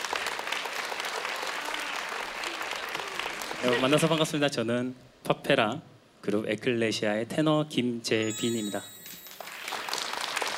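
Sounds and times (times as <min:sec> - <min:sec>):
audience clapping: 0:00.0 - 0:04.4, 0:09.2 - 0:10.5
speech: 0:03.6 - 0:08.9.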